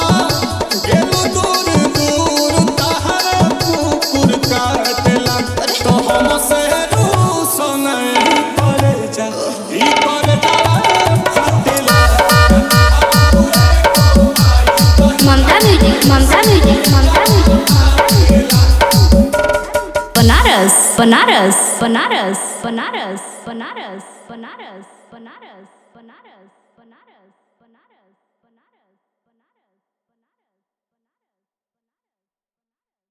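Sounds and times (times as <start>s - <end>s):
Bhojpuri DJ remix song: 0.0s - 23.4s.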